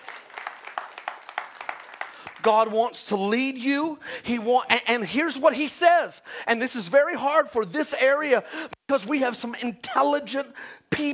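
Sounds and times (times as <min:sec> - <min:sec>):
crowd clapping: 0:00.0 - 0:02.9
speech: 0:02.4 - 0:11.1.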